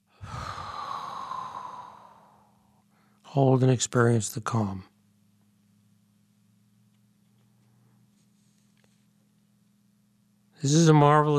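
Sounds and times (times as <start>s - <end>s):
deep breath in and out: 0.0s - 3.3s
speech: 3.4s - 4.9s, 10.6s - 11.3s.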